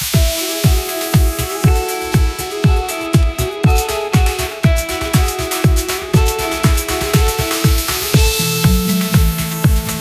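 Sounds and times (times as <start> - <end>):
fingerstyle pop guitar: 0.2 - 9.9.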